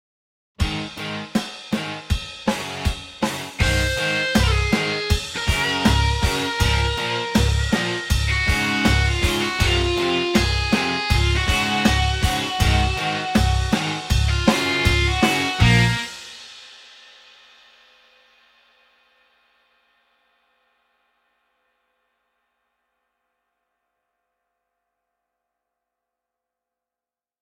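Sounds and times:
rock music: 0:00.6 - 0:16.4.

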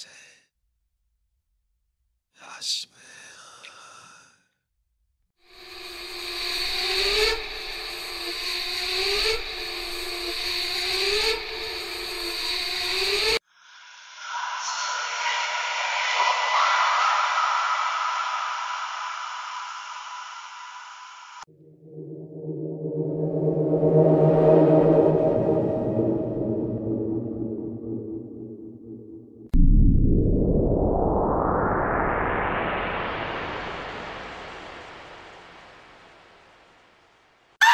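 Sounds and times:
AI-generated scary horror ghost sounds: 0:05.5 - 0:35.4.

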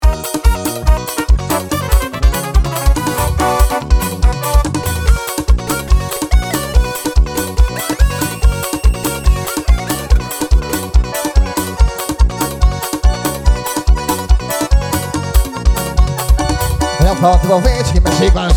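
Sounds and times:
enveloping flute in forró music: 0:00.0 - 0:15.5, 0:16.2 - 0:18.4.

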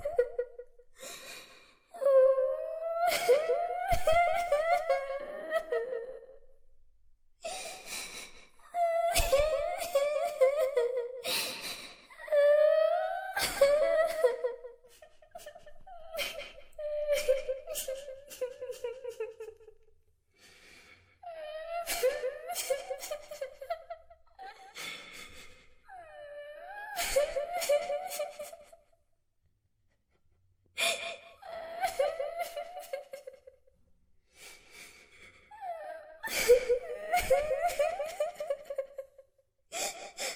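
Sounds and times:
creepy little girl crying and weeping horror sound effect: 0:00.0 - 0:00.7, 0:02.0 - 0:06.4, 0:08.7 - 0:19.7, 0:21.2 - 0:28.8, 0:30.8 - 0:33.6, 0:35.5 - 0:39.2.

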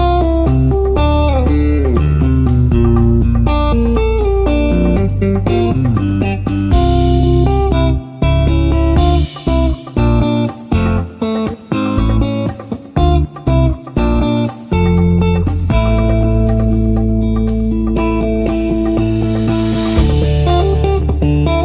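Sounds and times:
disco dance music with bass: 0:00.0 - 0:21.6.

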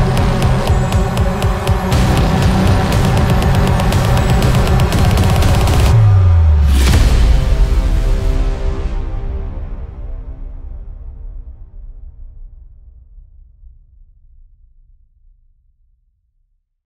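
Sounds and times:
creepy hybrid horror trailer music: 0:00.0 - 0:12.0.

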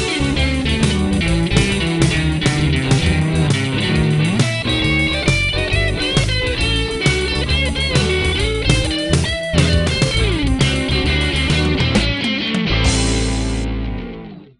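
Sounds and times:
blues groove on guitar: 0:00.0 - 0:14.5.

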